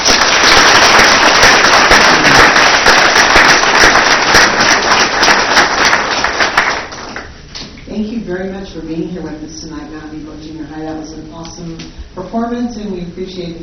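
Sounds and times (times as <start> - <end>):
audience applause: 0.0 - 7.3
speech: 8.8 - 13.6.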